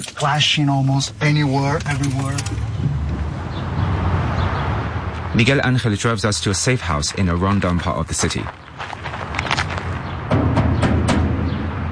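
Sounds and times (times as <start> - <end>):
speech: 0.0 - 3.0, 5.4 - 9.0
rumbling street noise: 0.0 - 11.9
knocking on a heavy metal gate: 10.3 - 11.9.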